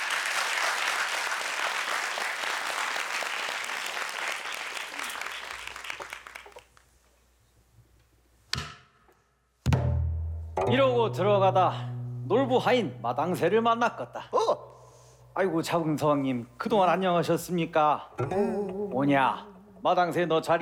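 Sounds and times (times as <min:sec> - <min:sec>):
audience applause: 0:00.0 - 0:06.8
speech: 0:10.7 - 0:14.4, 0:15.4 - 0:20.6.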